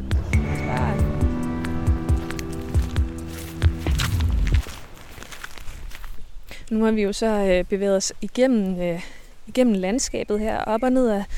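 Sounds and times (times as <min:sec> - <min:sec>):
footsteps walking into a stable building: 0:00.1 - 0:06.6
speech: 0:06.7 - 0:11.3.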